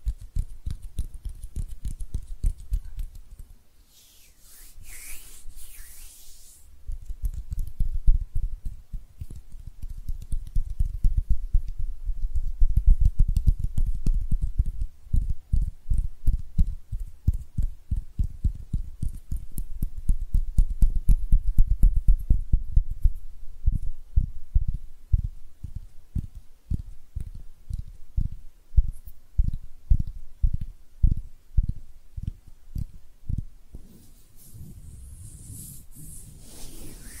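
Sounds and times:
muffled hand tapping and patting: 0.0 - 3.6, 6.8 - 23.9, 24.6 - 34.0
bright hissing rubs: 3.9 - 6.7, 33.8 - 37.1.

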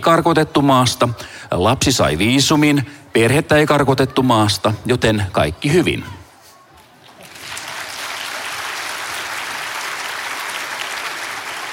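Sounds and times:
speech: 0.0 - 6.2
audience applause: 7.2 - 11.7.

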